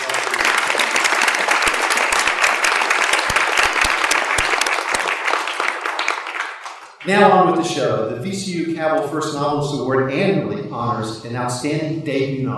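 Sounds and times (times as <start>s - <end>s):
audience applauding: 0.0s - 7.1s
speech: 7.1s - 12.5s.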